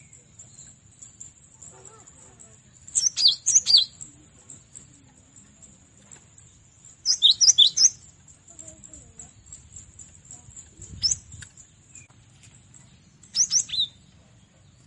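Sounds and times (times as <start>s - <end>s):
cinereous tit chirping song: 2.9s - 4.1s, 7.0s - 8.2s, 10.8s - 12.1s, 13.2s - 14.0s.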